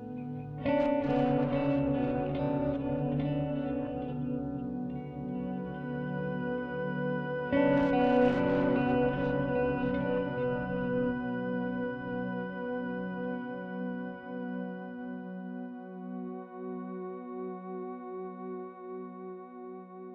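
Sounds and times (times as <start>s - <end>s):
tower ambience: 0.0s - 15.8s.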